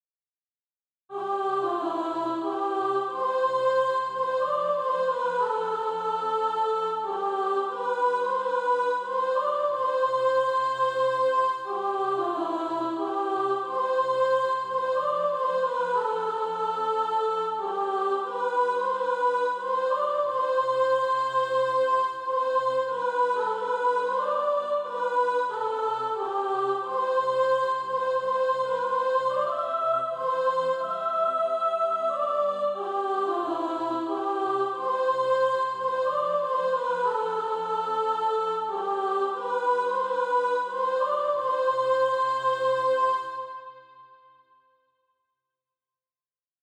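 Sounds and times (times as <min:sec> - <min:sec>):
soprano singing SATB practice music: 0:01.1 - 0:43.8.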